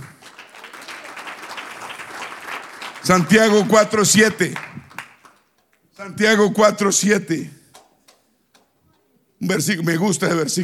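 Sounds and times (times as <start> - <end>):
audience applauding: 0.0 - 5.5
speech: 3.0 - 4.7, 6.1 - 7.6, 9.5 - 10.6.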